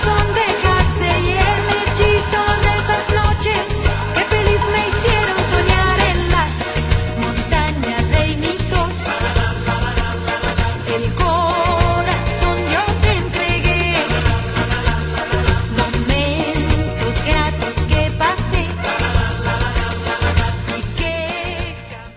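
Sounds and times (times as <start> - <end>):
samba medley: 0.0 - 22.1.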